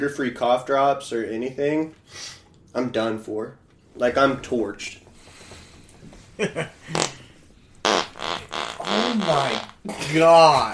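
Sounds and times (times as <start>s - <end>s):
speech: 0.0s - 5.0s, 6.4s - 7.1s, 9.2s - 10.7s
farting: 6.8s - 9.9s.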